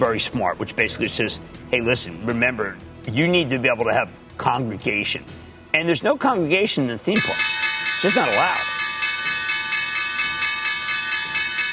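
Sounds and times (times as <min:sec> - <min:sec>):
speech: 0:00.0 - 0:08.7
stock exchange opening bell ringing: 0:07.2 - 0:11.7.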